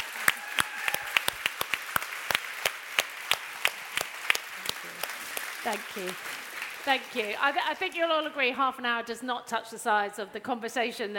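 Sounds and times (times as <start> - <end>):
audience applause: 0.0 - 8.0
speech: 5.6 - 11.1.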